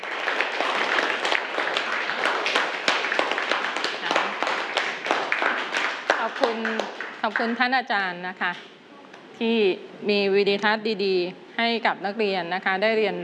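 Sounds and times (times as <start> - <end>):
children applauding: 0.0 - 7.6
speech: 7.2 - 8.7, 9.4 - 13.2.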